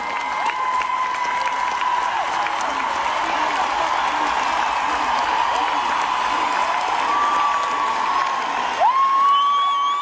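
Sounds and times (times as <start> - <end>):
large audience cheering and applauding: 0.0 - 10.0
shrill whistle: 9.2 - 10.0.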